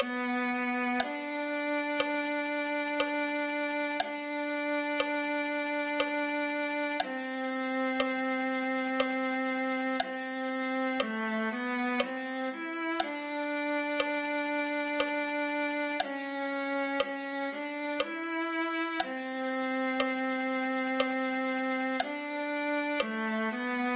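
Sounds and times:
viola: 0.0 - 23.9.

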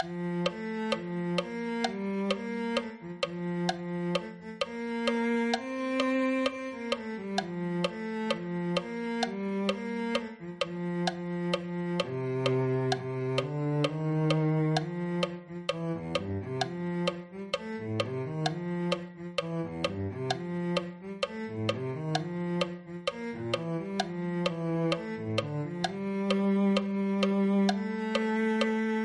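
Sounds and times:
cello: 0.0 - 29.0.

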